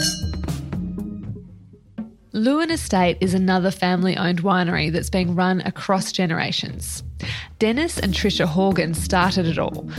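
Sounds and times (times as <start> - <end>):
wine glasses clinking in a toast: 0.0 - 0.5
speech: 2.4 - 9.9.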